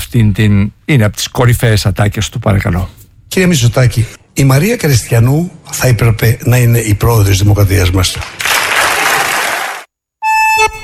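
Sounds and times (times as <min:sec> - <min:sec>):
speech: 0:00.1 - 0:08.6
audience applause: 0:08.2 - 0:09.9.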